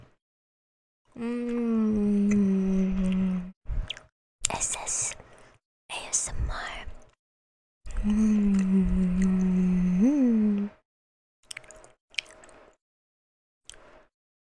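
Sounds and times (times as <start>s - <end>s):
speech: 1.2s - 1.6s
person humming: 1.2s - 3.5s, 7.9s - 10.8s.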